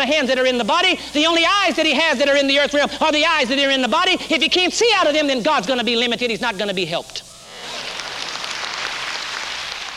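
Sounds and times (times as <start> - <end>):
speech: 0.0 - 7.3
crowd clapping: 7.5 - 9.9.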